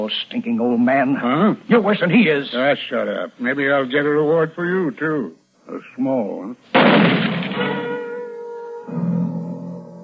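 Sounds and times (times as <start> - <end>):
speech: 0.0 - 8.0
gunshot: 6.7 - 8.0.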